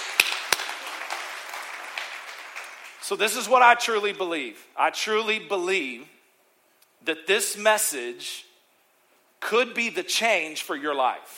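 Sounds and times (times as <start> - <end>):
audience hand clapping: 0.0 - 3.0
speech: 3.1 - 6.2, 7.0 - 8.5, 9.4 - 11.3.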